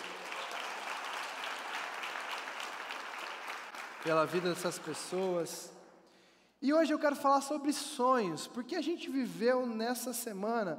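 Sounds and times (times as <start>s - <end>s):
audience applause: 0.0s - 5.5s
speech: 4.0s - 5.8s, 6.6s - 10.7s.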